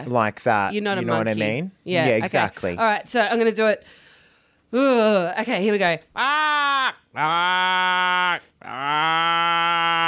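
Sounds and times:
speech: 0.0 - 4.0, 4.7 - 10.0
person imitating a crow's caw: 6.2 - 10.0.

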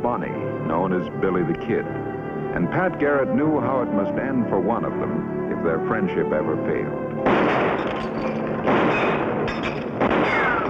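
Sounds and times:
speech: 0.0 - 9.8
gunshots in a Western radio drama: 7.2 - 10.6.

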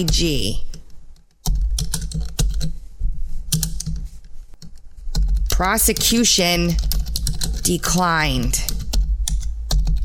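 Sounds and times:
speech: 0.0 - 0.7, 5.6 - 6.9, 7.6 - 8.6
keyboard typing: 0.0 - 2.8, 3.5 - 4.0, 4.6 - 10.0.

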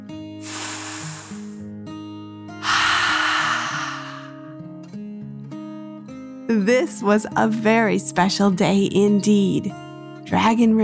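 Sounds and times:
storyteller imitating a dragon's deep breath in and out: 0.4 - 1.6, 2.6 - 4.6
soft sustained music: 5.3 - 10.8
speech: 6.5 - 10.8.

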